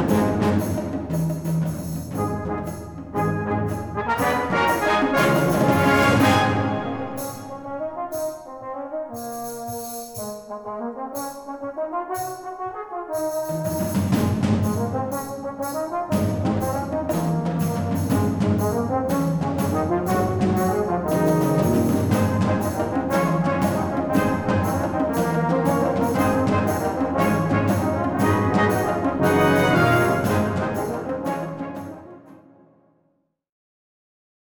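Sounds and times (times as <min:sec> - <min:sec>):
fanfare: 0:00.0 - 0:00.9, 0:02.1 - 0:08.8, 0:18.3 - 0:32.6
gigue: 0:00.0 - 0:11.6, 0:13.2 - 0:32.6.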